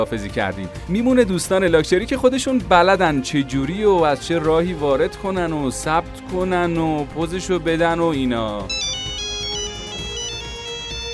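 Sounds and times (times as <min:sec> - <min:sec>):
speech: 0:00.0 - 0:08.9
luxury mobile phone electronic ringtone melody: 0:08.7 - 0:11.1.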